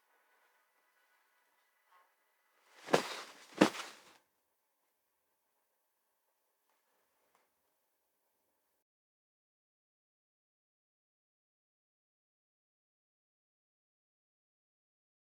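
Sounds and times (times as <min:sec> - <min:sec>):
bird flying: 0:02.8 - 0:04.1.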